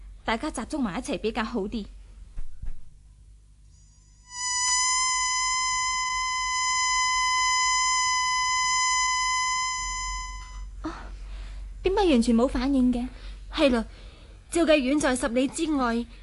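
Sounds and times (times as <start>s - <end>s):
speech: 0.3s - 2.0s, 12.1s - 16.2s
emergency whistle blown: 4.2s - 10.7s.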